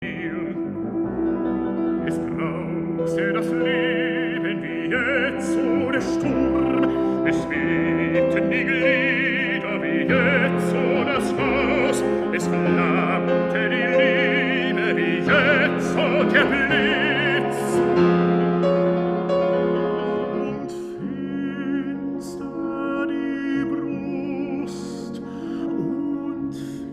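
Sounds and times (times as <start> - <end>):
vocal music: 0.0 - 26.9.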